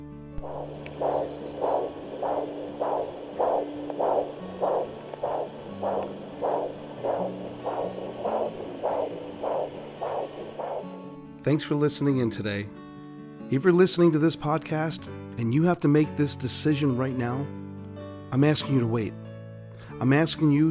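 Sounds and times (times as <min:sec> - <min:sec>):
speech: 0:00.4 - 0:01.4, 0:11.4 - 0:12.8, 0:13.5 - 0:17.6, 0:18.3 - 0:19.2, 0:20.0 - 0:20.7
low electronic hum: 0:00.4 - 0:10.9
fetal heartbeat at six weeks on ultrasound: 0:00.4 - 0:11.0.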